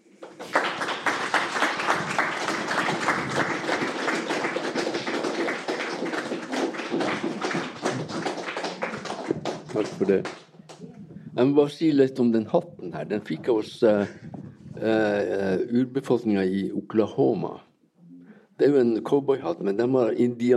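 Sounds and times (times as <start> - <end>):
audience applauding: 0.0 - 11.5
speech: 9.8 - 10.4, 11.4 - 17.7, 18.6 - 20.5.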